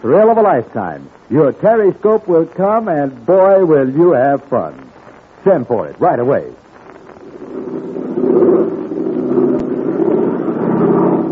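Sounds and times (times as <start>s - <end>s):
speech: 0.0s - 6.6s
American-made airplane engine flying overhead: 7.1s - 11.3s.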